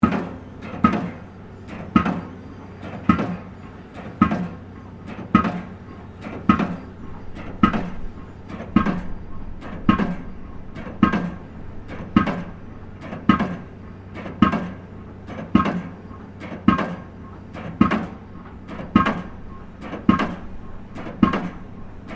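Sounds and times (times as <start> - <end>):
construction pile driver operating: 0.0 - 22.1.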